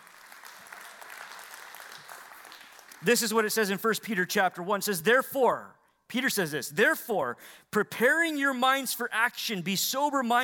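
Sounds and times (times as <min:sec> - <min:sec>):
audience clapping: 0:00.0 - 0:03.5
speech: 0:03.0 - 0:10.4.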